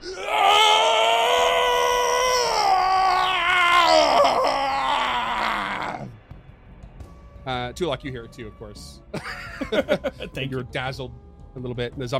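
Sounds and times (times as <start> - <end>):
man's long blood-curdling scream: 0.0 - 6.1
speech: 7.7 - 12.1
laughter: 9.2 - 10.4.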